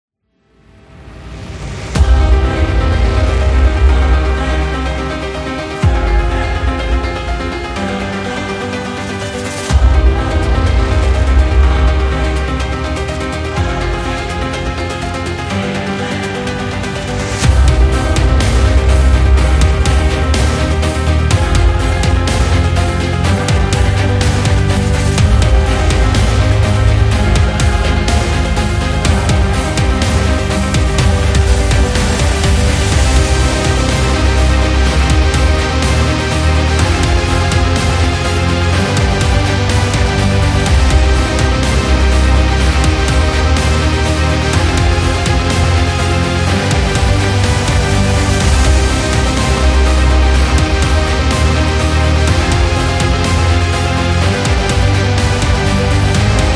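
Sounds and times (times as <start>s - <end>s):
epic modern sport metal music: 0.7s - 56.5s.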